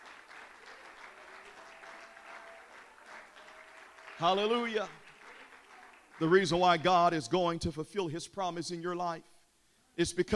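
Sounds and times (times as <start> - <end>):
audience clapping hands: 0.0 - 7.0
speech: 4.2 - 5.0, 6.2 - 9.3, 10.0 - 10.3.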